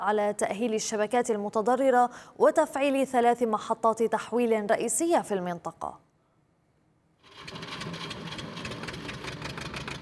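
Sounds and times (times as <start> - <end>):
speech: 0.0 - 6.1
diesel generator powering a grain-sieving mill: 7.3 - 9.9.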